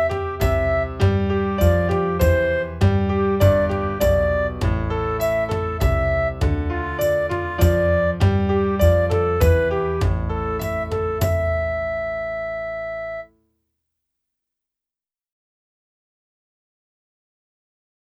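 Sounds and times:
flute: 0.0 - 13.3.

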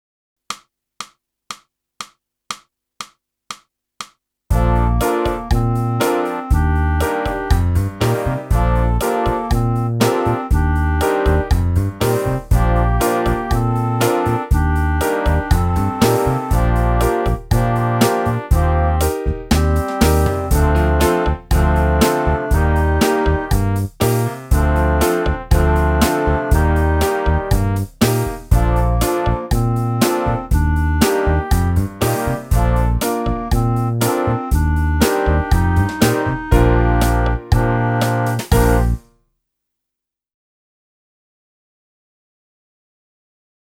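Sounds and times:
saxophone: 4.5 - 39.0.

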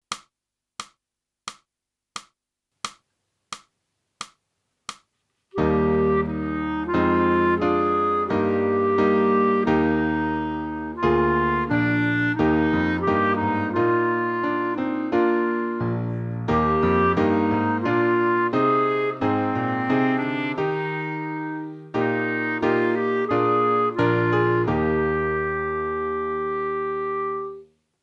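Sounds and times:
clarinet: 5.5 - 27.7.

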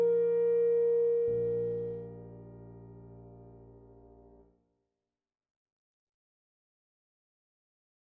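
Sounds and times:
full clarinet piece: 0.0 - 4.1.

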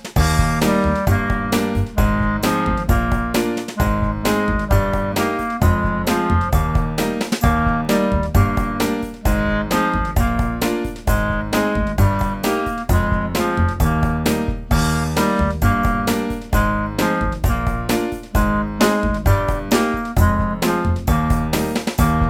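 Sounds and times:
clarinet: 0.2 - 22.2.

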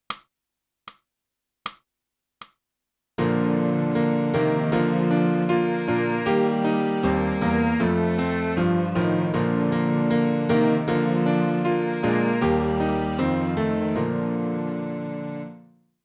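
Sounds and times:
clarinet: 3.2 - 15.8.

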